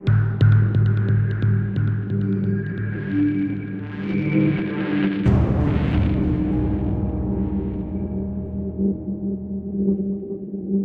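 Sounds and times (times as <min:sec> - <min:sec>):
tubular bells stinger: 0:00.1 - 0:04.3, 0:05.2 - 0:10.7.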